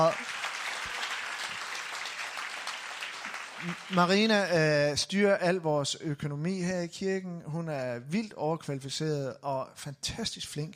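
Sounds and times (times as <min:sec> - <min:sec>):
speech: 0:00.0 - 0:00.4, 0:03.6 - 0:10.7
audience clapping: 0:00.0 - 0:04.7.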